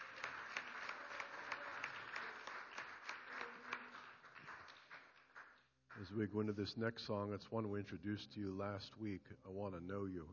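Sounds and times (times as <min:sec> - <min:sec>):
crowd applauding: 0:00.0 - 0:06.1
speech: 0:06.0 - 0:10.3.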